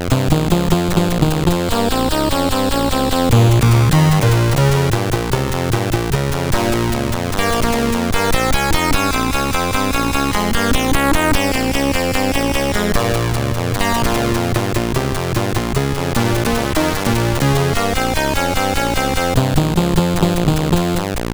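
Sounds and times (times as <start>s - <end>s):
SID CSG8580R5 chip music: 0.1s - 21.2s.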